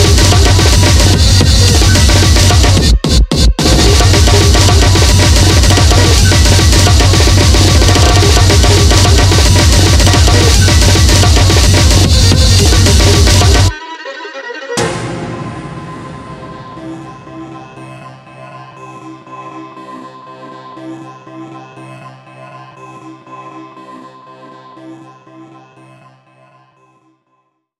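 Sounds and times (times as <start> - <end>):
jazz music: 0.0 - 3.0, 3.6 - 17.6.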